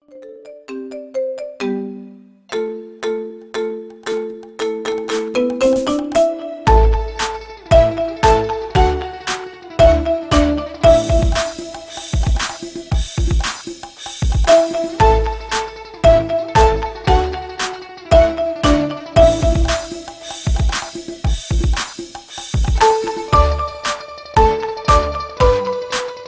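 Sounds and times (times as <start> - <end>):
marimba ringtone remix: 0.0 - 13.5, 14.1 - 21.8, 22.5 - 26.2.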